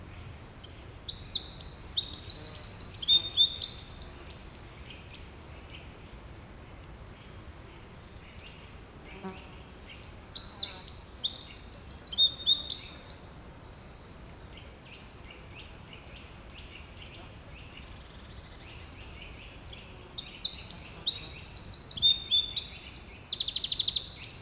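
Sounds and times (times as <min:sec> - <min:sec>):
Eurasian wren Troglodytes troglodytes singing: 0:00.2 - 0:04.5, 0:09.2 - 0:13.6, 0:19.2 - 0:24.4.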